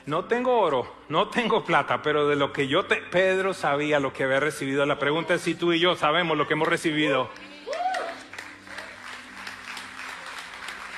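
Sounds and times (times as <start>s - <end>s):
speech: 0.0s - 7.5s
audience applause: 7.7s - 10.9s.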